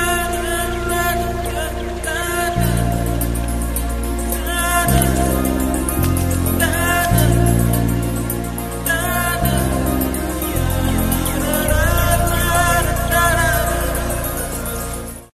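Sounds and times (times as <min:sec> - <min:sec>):
Indian background music ringtone: 0:00.1 - 0:15.3.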